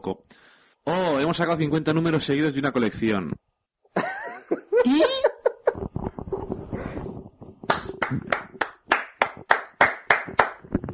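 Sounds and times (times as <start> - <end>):
speech: 0.8 - 3.5
laughter: 4.0 - 5.9
hand clapping: 7.7 - 10.7.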